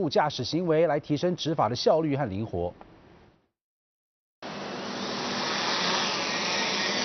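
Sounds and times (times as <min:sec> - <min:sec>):
speech: 0:00.0 - 0:02.9
drone motors buzzing while taking off: 0:04.5 - 0:07.0.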